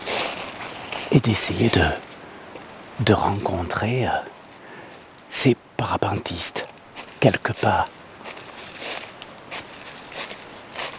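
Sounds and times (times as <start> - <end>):
footsteps on dry dead leaves: 0.0 - 3.5, 6.6 - 10.9
speech: 1.1 - 2.1, 3.0 - 4.4, 5.3 - 8.0.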